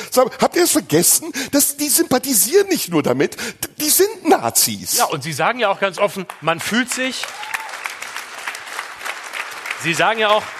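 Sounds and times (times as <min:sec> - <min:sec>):
speech: 0:00.2 - 0:07.6, 0:09.8 - 0:10.5
audience applause: 0:06.2 - 0:10.5.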